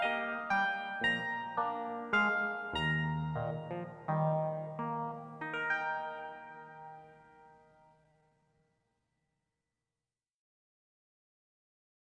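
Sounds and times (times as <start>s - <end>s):
keyboard solo: 0.0s - 7.8s.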